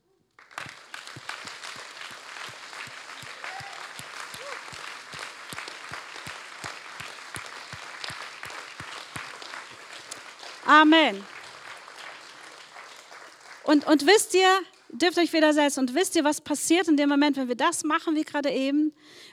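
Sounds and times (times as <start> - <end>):
audience applause: 0.4 - 14.8
speech: 10.7 - 11.3, 13.7 - 19.3.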